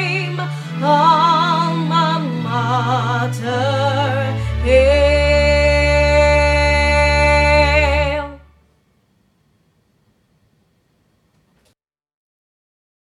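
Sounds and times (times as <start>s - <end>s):
person singing: 0.0s - 8.5s.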